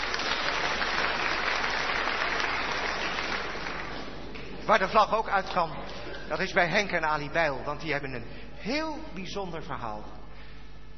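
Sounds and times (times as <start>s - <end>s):
group clapping: 0.0s - 4.7s
speech: 4.7s - 10.2s.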